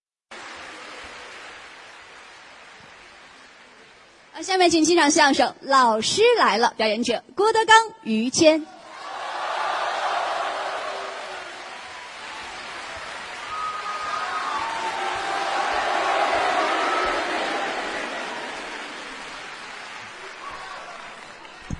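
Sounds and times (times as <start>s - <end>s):
audience applause: 0.4s - 4.1s, 8.9s - 21.7s
speech: 4.4s - 8.8s.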